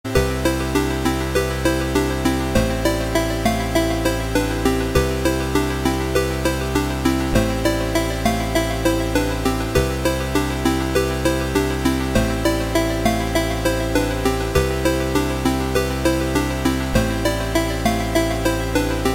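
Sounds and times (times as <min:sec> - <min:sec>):
8-bit chiptune: 0:00.2 - 0:19.1.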